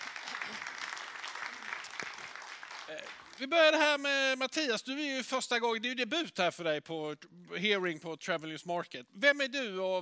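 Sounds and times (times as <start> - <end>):
crowd applause for the panel: 0.0 - 3.5
speech: 2.9 - 10.0.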